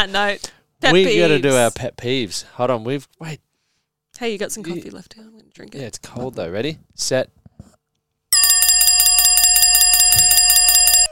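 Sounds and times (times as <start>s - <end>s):
speech: 0.0s - 3.5s, 4.2s - 7.4s
bell buzzer sound effect: 8.4s - 11.1s.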